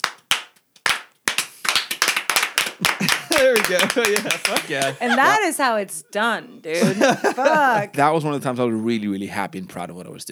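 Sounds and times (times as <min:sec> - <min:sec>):
slow golf clap: 0:00.0 - 0:05.5, 0:06.7 - 0:08.0
laughter: 0:02.6 - 0:08.2
speech: 0:02.8 - 0:10.3.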